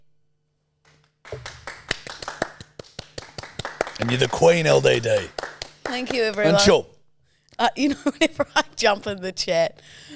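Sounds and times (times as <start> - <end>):
hand clapping: 0.9 - 6.6
speech: 4.0 - 6.9, 7.6 - 10.1.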